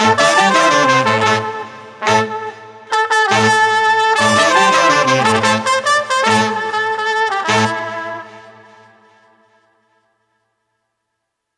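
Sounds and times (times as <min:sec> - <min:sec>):
street brass funk music without drums: 0:00.0 - 0:08.7.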